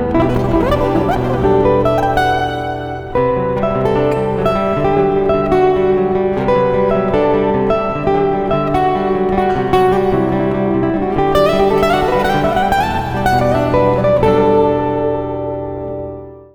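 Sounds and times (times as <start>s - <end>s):
E minor 9th chord on acoustic guitar: 0.2s - 16.1s.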